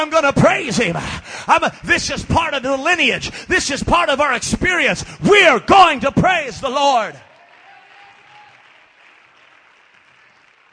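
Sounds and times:
speech: 0.0s - 7.3s
audience clapping hands: 6.9s - 10.7s.

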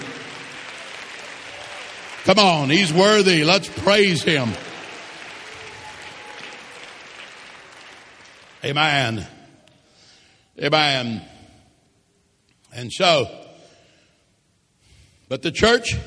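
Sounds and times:
audience clapping hands: 0.0s - 9.5s
speech: 2.2s - 4.6s, 8.6s - 9.4s, 10.6s - 11.3s, 12.7s - 13.4s, 15.3s - 16.0s.

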